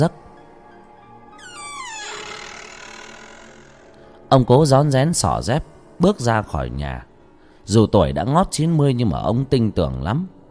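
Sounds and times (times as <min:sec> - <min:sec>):
speech: 0:00.0 - 0:00.2, 0:04.3 - 0:07.1, 0:07.7 - 0:10.4
door creaking open: 0:01.4 - 0:04.2.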